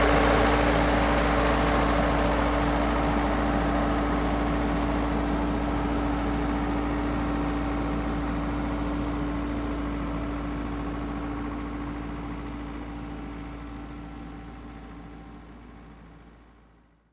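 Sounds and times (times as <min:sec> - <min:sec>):
tractor passing by: 0:00.0 - 0:13.6.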